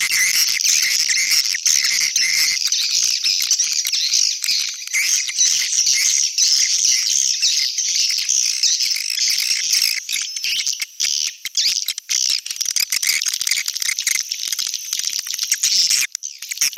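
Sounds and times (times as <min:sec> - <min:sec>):
swiftlets twittering and clicking: 0:00.0 - 0:16.6.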